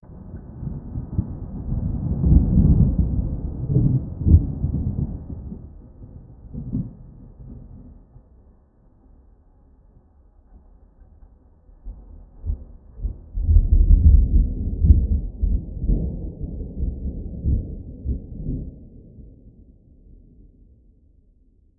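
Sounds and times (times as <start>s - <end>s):
thunder in an open field: 0.0s - 8.5s, 10.6s - 20.6s.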